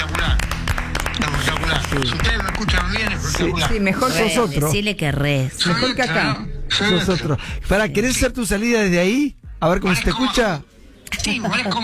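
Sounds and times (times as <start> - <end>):
crowd clapping: 0.0 - 4.1
speech: 1.9 - 11.8.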